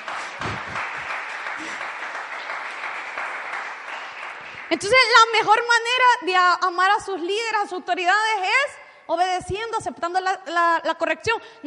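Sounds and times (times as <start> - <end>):
audience applause: 0.0 - 4.9
speech: 4.7 - 11.6.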